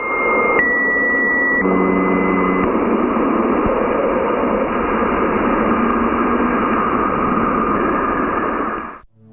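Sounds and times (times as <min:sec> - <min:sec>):
Jupiter's radio emissions, deep roaring hum: 0:00.0 - 0:09.1.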